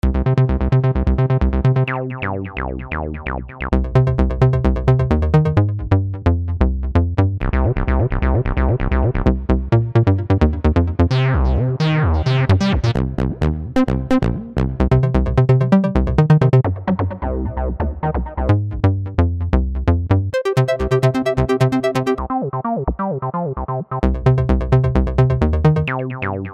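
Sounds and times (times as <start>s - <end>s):
music beat: 0.2s - 26.5s.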